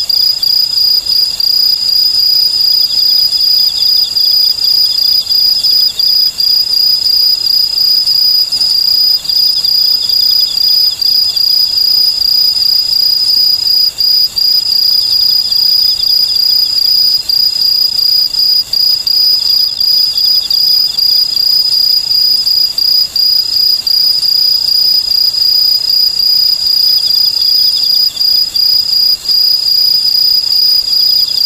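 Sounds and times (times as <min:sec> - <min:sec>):
okamekourogi cricket chirping: 0:00.0 - 0:31.4.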